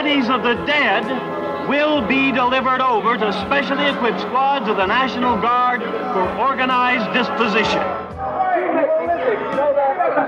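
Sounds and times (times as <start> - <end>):
speech: 0.0 - 8.0, 8.8 - 10.2
bustling crowd chatter: 0.0 - 10.2.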